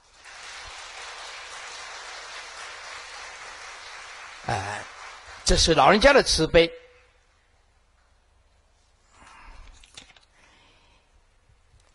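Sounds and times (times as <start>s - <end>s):
audience applause: 0.0s - 6.2s
speech: 4.5s - 4.9s, 5.5s - 6.8s.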